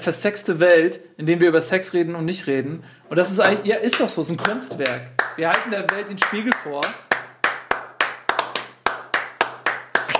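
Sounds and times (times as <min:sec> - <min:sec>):
speech: 0:00.0 - 0:07.1
rhythmic hand clapping: 0:03.5 - 0:10.1.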